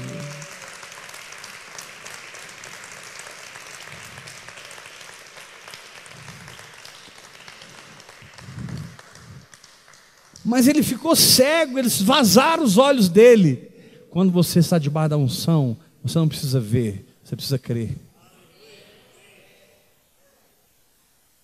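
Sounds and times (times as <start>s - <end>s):
audience applauding: 0.0s - 11.4s
speech: 10.5s - 18.1s.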